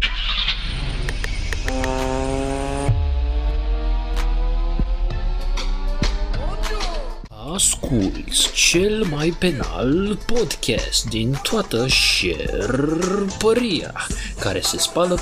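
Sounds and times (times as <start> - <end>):
car engine starting and running: 0.0 - 7.2
speech: 7.6 - 15.2.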